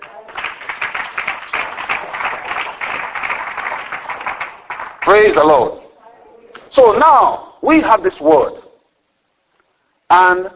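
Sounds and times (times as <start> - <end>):
audience applause: 0.0 - 5.5
speech: 5.1 - 5.8, 6.8 - 8.6, 10.1 - 10.5.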